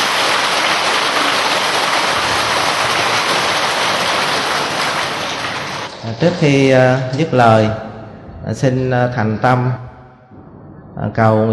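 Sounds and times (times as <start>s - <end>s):
crowd applauding: 0.0s - 6.0s
speech: 6.2s - 7.8s, 8.4s - 9.8s, 11.0s - 11.5s.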